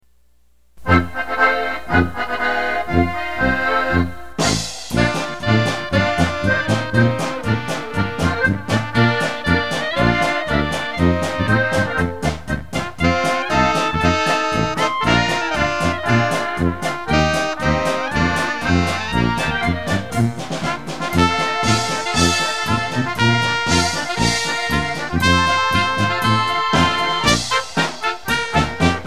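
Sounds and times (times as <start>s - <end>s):
German band playing: 0.8s - 29.0s.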